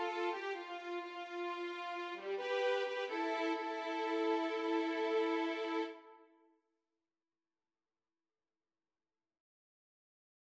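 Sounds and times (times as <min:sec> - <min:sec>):
violin: 0:00.0 - 0:06.3.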